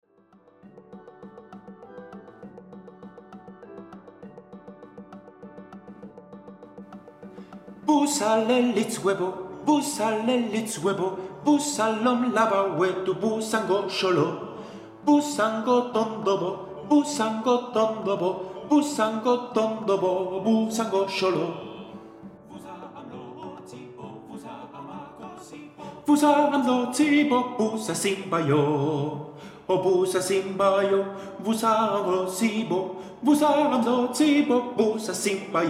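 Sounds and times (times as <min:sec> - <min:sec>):
soprano singing: 0:07.8 - 0:35.6.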